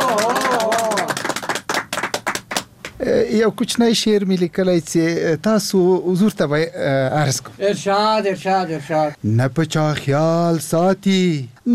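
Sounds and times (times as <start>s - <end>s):
audience at a poetry gathering clapping to welcome a poet: 0.0s - 3.0s
speech: 3.0s - 11.7s.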